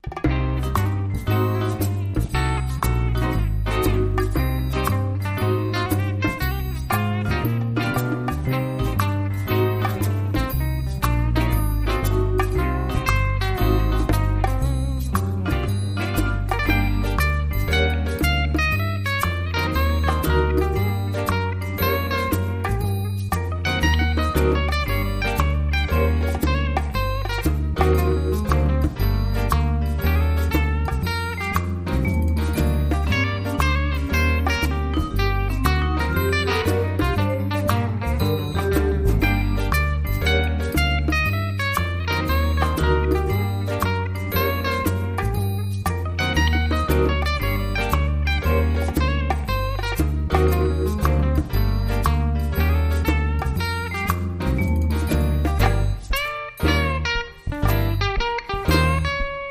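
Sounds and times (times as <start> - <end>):
guitar solo underscore: 0.0 - 59.5.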